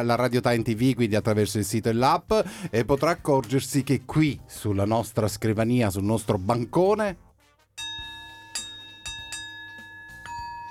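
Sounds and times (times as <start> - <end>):
speech: 0.0 - 7.2
Tibetan singing bowl ringing: 7.8 - 10.6.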